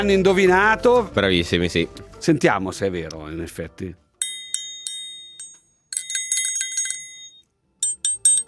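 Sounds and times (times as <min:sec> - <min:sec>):
speech: 0:00.0 - 0:04.0
simple triangle being struck: 0:04.2 - 0:08.4.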